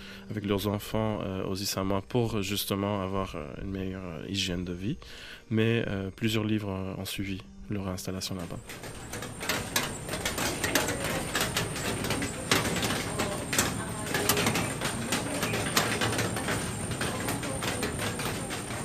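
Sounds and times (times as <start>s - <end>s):
speech: 0.3s - 9.4s
rain falling on metal sheet roof: 8.5s - 18.8s.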